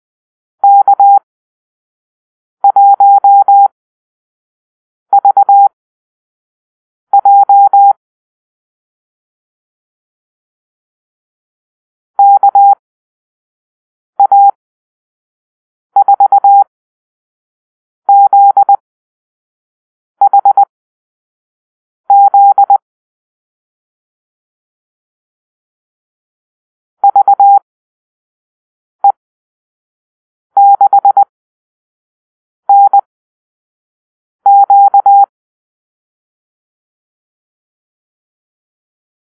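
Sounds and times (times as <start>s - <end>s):
morse code call-sign beeps: 0.6s - 1.2s, 2.6s - 3.7s, 5.1s - 5.7s, 7.1s - 8.0s, 12.2s - 12.8s, 14.2s - 14.6s, 16.0s - 16.7s, 18.1s - 18.8s, 20.2s - 20.7s, 22.1s - 22.8s, 27.0s - 27.6s, 30.6s - 31.3s, 32.7s - 33.1s, 34.5s - 35.3s.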